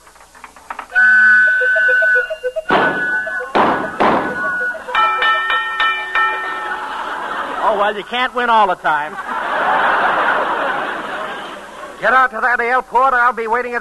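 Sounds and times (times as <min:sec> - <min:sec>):
pinball machine playing: 0:00.1 - 0:08.0
laughter: 0:01.4 - 0:12.1
speech: 0:07.8 - 0:09.9, 0:12.0 - 0:13.7.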